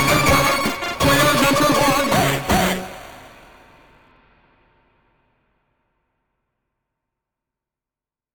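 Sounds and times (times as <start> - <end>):
8-bit music: 0.0 - 3.3.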